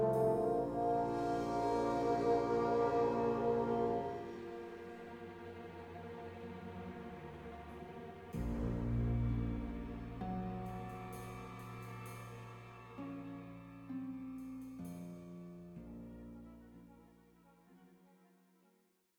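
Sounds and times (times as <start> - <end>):
spooky forest ambience: 0.2 - 15.3.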